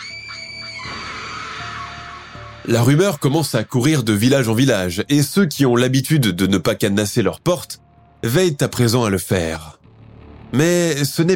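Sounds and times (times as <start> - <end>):
horse whinny: 0.0 - 2.6
woman screaming: 0.0 - 2.6
speech: 2.6 - 9.8, 10.5 - 11.3.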